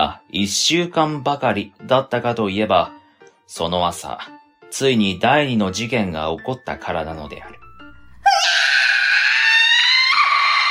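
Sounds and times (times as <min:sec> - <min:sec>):
speech: 0:00.3 - 0:07.6
piercing shrill scream: 0:08.2 - 0:10.7.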